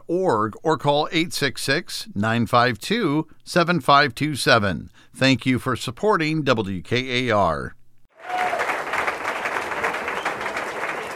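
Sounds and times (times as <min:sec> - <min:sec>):
speech: 0:00.1 - 0:08.5
happy satisfied crowd applauding: 0:08.1 - 0:11.1.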